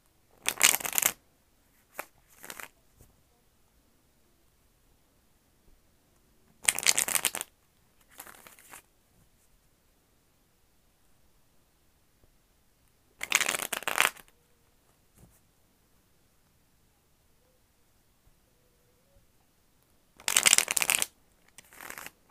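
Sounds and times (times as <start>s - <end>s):
tarot cards shuffling: 0.4s - 1.2s, 1.8s - 2.7s, 6.6s - 8.8s, 13.2s - 14.3s, 20.2s - 22.2s.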